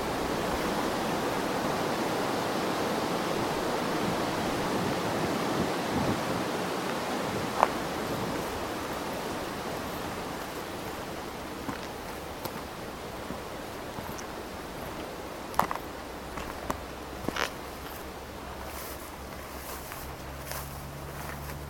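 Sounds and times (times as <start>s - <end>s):
wind blowing in Dorset: 0.0s - 21.6s.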